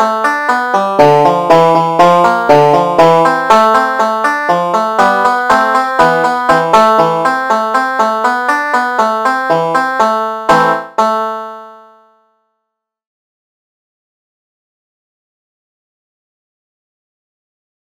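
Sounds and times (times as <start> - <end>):
banjo melody: 0.0 - 12.1.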